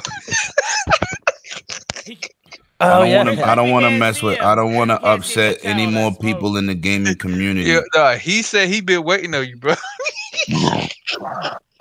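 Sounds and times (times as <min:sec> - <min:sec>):
laughter: 0:00.0 - 0:07.8, 0:09.7 - 0:11.3
speech: 0:02.1 - 0:11.7
deep rumbling burp: 0:10.5 - 0:11.6.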